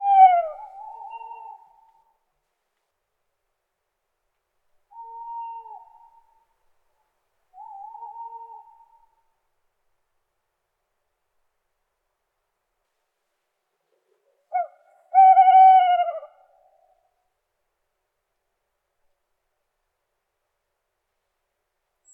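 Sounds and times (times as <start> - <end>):
owl hooting: 0.0 - 2.1, 4.9 - 6.5, 7.6 - 9.1, 14.0 - 17.0.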